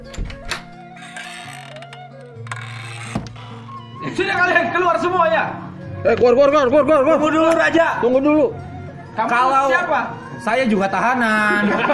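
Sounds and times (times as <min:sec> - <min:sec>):
prison cell door opening: 0:00.0 - 0:04.0
speech: 0:04.2 - 0:08.6, 0:09.2 - 0:11.9
laughter: 0:11.2 - 0:11.9.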